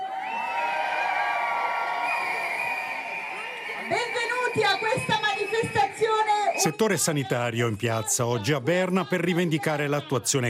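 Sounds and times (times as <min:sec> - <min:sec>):
high whoops and shouts: 0:00.0 - 0:06.8
crowd cheering at a healthcare workers' protest on the Federal Square in Bern: 0:00.0 - 0:07.4
speech: 0:03.9 - 0:05.1, 0:06.6 - 0:10.4.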